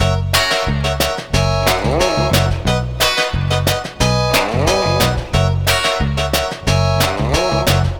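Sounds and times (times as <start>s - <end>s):
lounge music full mix in F sharp: 0.0s - 7.9s.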